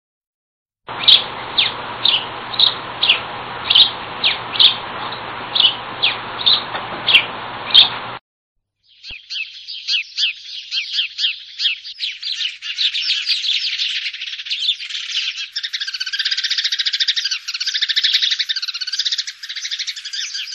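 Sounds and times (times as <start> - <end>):
house sparrow chirping: 0.9 - 8.0, 8.8 - 20.5.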